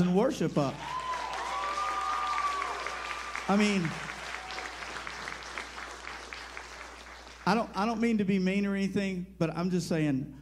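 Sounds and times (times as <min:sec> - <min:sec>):
speech: 0:00.0 - 0:01.0, 0:03.5 - 0:04.1, 0:07.5 - 0:10.4
audience applause: 0:00.6 - 0:07.8.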